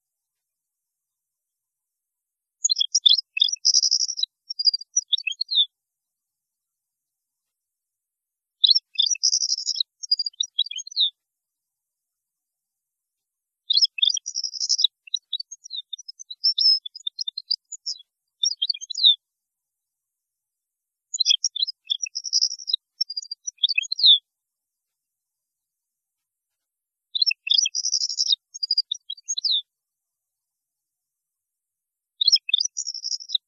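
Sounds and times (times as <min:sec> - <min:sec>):
European goldfinch song: 0:02.6 - 0:05.7, 0:08.6 - 0:11.2, 0:13.7 - 0:19.2, 0:21.1 - 0:24.2, 0:27.2 - 0:29.7, 0:32.2 - 0:33.4.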